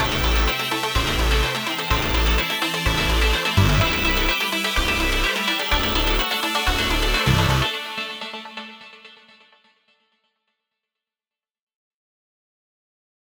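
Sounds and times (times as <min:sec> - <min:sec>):
electro playalong music: 0:00.0 - 0:09.3.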